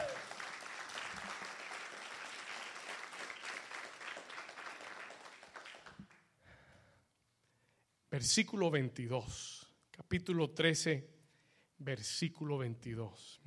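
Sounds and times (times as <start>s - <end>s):
loud applause: 0.0s - 6.2s
speech: 8.2s - 11.2s, 11.8s - 13.4s.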